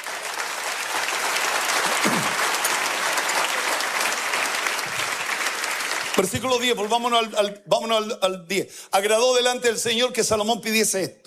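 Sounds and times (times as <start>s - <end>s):
audience applauding: 0.0s - 7.2s
speech: 6.2s - 11.2s.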